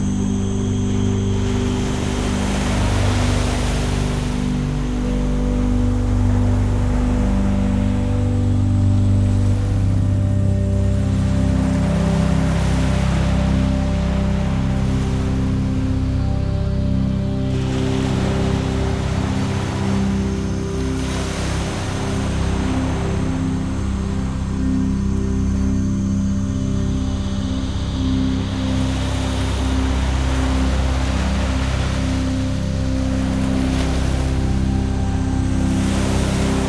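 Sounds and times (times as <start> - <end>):
relaxation music: 0.0 - 36.6
soothing gentle ocean waves: 0.0 - 36.6.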